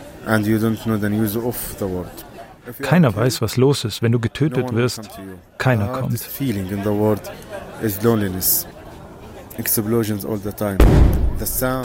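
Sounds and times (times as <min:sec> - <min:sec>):
speech: 0:00.2 - 0:08.8, 0:09.6 - 0:11.8
explosions, detonations in war zone: 0:10.8 - 0:11.8.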